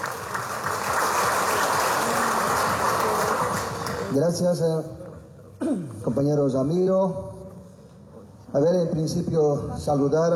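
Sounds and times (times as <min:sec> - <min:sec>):
audience applause: 0:00.0 - 0:04.2
speech: 0:04.2 - 0:05.0, 0:05.7 - 0:07.3, 0:08.5 - 0:10.3.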